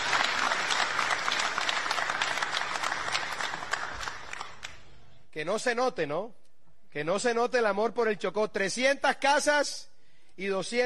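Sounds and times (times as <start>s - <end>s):
audience applause: 0.0s - 4.8s
speech: 5.4s - 10.8s.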